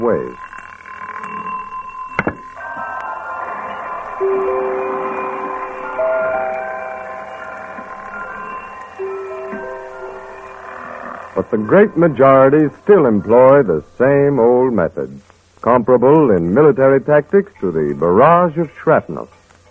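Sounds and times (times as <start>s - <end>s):
speech: 0.0s - 0.6s, 11.4s - 19.4s
repeater alarm clock click: 0.3s - 13.7s.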